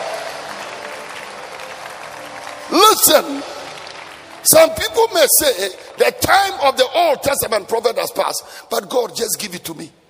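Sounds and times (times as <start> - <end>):
crowd clapping: 0.0 - 7.5
speech: 2.7 - 3.6, 4.4 - 10.0.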